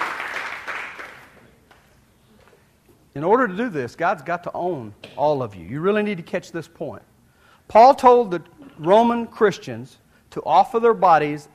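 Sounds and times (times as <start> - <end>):
audience clapping: 0.0 - 1.9
speech: 3.2 - 7.1, 7.7 - 11.5.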